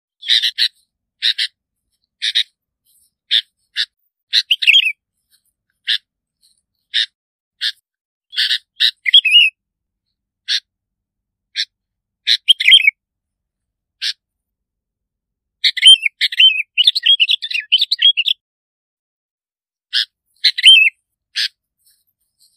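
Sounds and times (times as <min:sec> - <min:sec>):
bulbul rasping calls and whistles: 0:00.2 - 0:05.0, 0:06.9 - 0:09.5, 0:10.4 - 0:10.7, 0:11.5 - 0:12.9, 0:15.6 - 0:18.4, 0:19.9 - 0:22.5.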